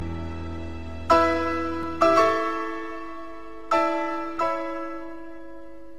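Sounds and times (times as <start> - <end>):
piano chord: 0.0 - 5.9.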